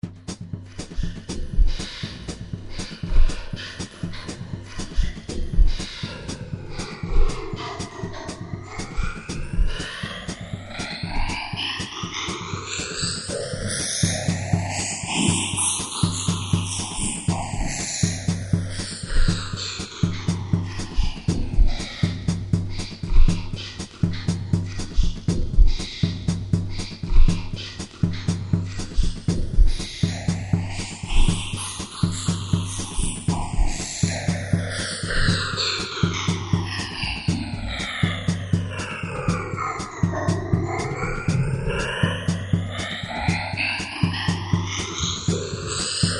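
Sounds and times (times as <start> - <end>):
drum kit: 0.0 - 46.1.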